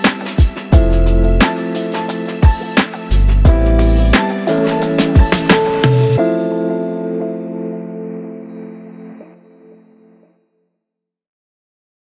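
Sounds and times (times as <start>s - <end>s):
hip hop music: 0.0s - 7.0s.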